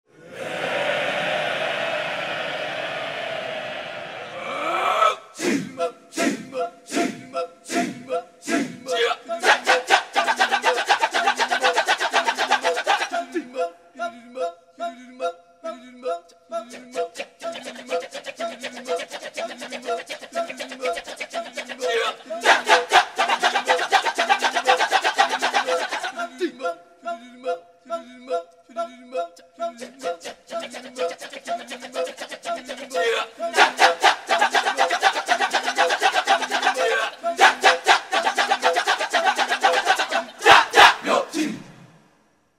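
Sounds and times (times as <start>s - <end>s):
Balinese kecak chanting: 0.1s - 14.5s, 16.8s - 28.4s, 29.8s - 41.9s.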